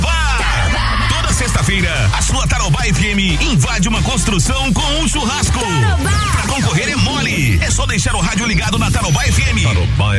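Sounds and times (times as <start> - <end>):
construction workers shouting together: 0.2 - 2.3
speech: 3.2 - 10.1.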